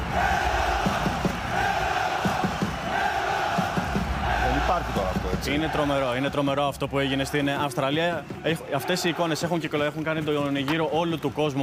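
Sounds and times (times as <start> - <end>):
large crowd chanting: 0.0 - 6.3, 8.7 - 9.5
speech: 4.8 - 11.6.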